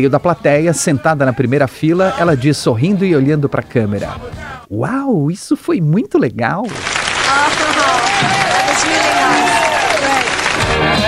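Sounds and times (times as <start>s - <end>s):
speech: 0.0s - 7.5s
audience applause: 6.7s - 11.0s.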